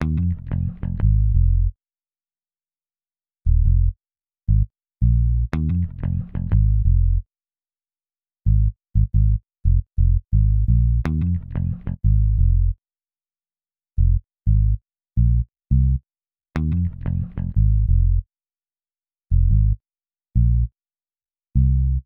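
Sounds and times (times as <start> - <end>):
electric bass: 0.0 - 1.8, 3.5 - 7.2, 8.5 - 12.8, 14.0 - 16.0, 16.6 - 18.2, 19.3 - 19.8, 20.4 - 20.7, 21.6 - 22.0.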